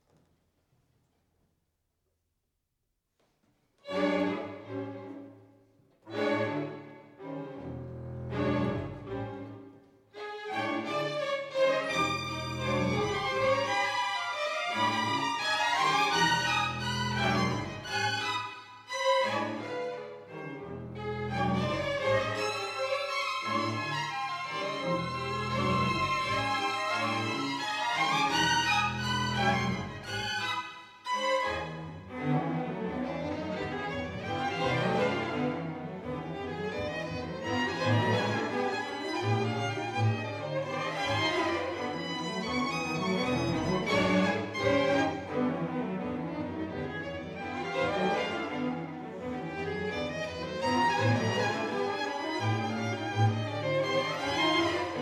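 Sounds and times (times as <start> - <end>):
partita courante: 3.1 - 55.0.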